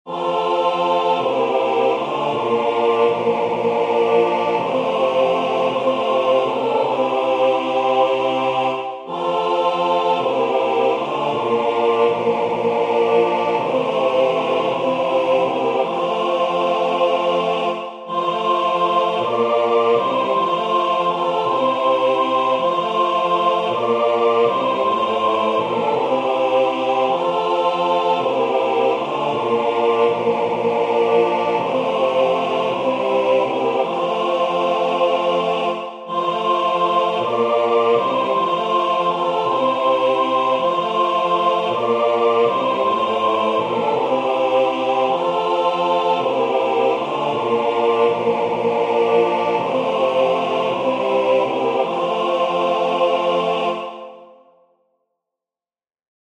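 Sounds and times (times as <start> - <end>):
SATB choir singing a placement exercise: 0.0 - 54.6.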